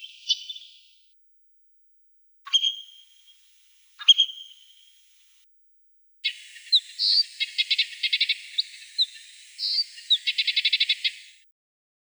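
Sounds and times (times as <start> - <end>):
white-winged snowfinch voice: 0.0 - 0.9, 2.5 - 5.1, 6.2 - 11.4.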